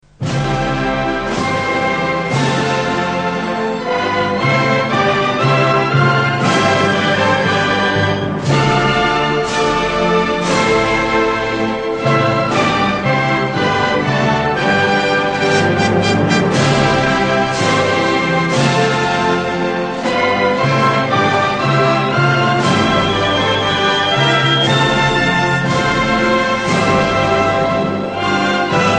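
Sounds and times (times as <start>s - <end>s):
patriotic music: 0.0s - 28.9s.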